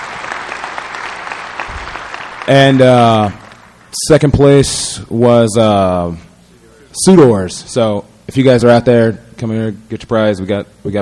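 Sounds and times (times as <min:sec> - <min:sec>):
audience applause for a third-place team at a prize giving: 0:00.0 - 0:03.9
speech: 0:02.4 - 0:06.3, 0:07.0 - 0:11.0.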